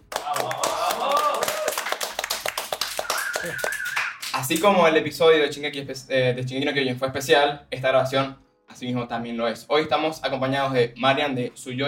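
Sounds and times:
audience clapping: 0.0s - 4.7s
speech: 3.4s - 3.7s, 4.4s - 11.8s.

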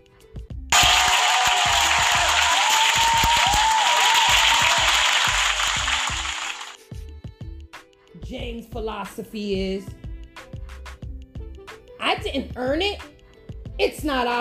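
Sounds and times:
applause: 0.7s - 6.8s
speech: 8.7s - 10.0s, 12.3s - 13.1s, 13.8s - 14.3s.

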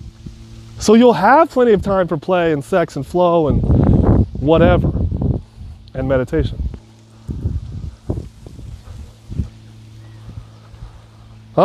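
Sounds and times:
faint hum: 0.0s - 11.6s
speech: 0.8s - 3.8s, 4.4s - 4.9s, 6.0s - 6.6s
wind gusts outdoors buffeting the microphone: 1.6s - 11.5s.

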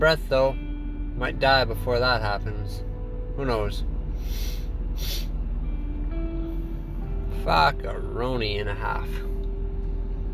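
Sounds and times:
speech: 0.0s - 5.3s, 7.4s - 9.3s
steady hum: 0.0s - 10.3s
person sniffling: 4.2s - 5.3s.

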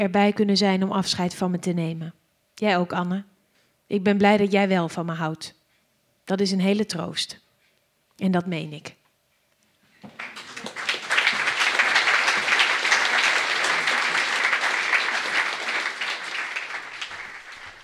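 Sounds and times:
speech: 0.0s - 3.3s, 3.9s - 5.6s, 6.3s - 7.4s, 8.2s - 9.0s
theatre audience applause in Theater Bouwkunde Deventer: 10.1s - 17.8s.

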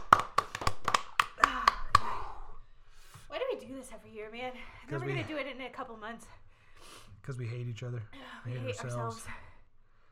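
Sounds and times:
hand clapping applause from a small group: 0.0s - 2.4s
speech: 3.8s - 6.4s, 7.2s - 9.4s.

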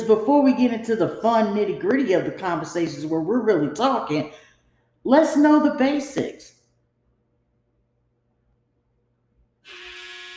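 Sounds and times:
speech: 0.0s - 4.4s, 5.0s - 6.6s
harsh electric buzzer droning: 9.6s - 10.3s.

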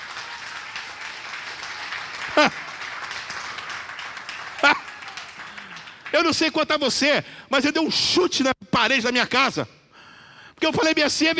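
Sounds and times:
audience applause: 0.0s - 6.5s
speech: 2.4s - 2.6s, 6.2s - 9.8s, 10.6s - 11.3s.

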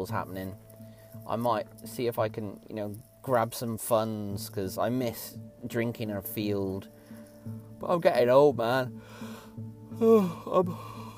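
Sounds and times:
speech: 0.0s - 10.9s
person yawning: 10.0s - 11.1s.

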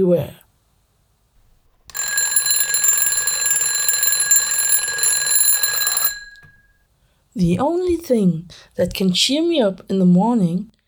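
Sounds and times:
speech: 0.0s - 0.4s, 7.4s - 10.8s
alarm clock ringing: 1.9s - 6.7s.

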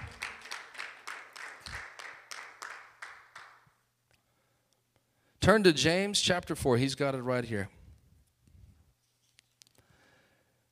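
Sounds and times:
group clapping: 0.0s - 3.8s
speech: 5.5s - 7.8s.

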